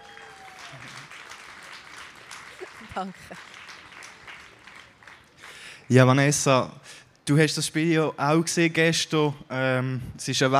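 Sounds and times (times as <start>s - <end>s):
applause: 0.0s - 6.1s
speech: 0.7s - 1.2s, 2.6s - 3.6s, 5.9s - 10.5s.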